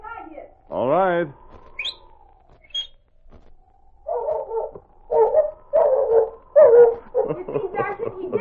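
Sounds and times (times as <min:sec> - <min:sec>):
speech: 0:00.8 - 0:02.0
short descending whistle with high chirps: 0:01.6 - 0:03.0
dog barking and whimpering yelps on cue: 0:04.0 - 0:07.6
laughter: 0:07.0 - 0:08.3.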